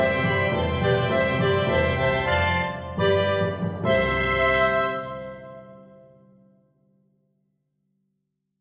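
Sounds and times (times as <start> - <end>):
choir accompaniment music: 0.0 - 5.6.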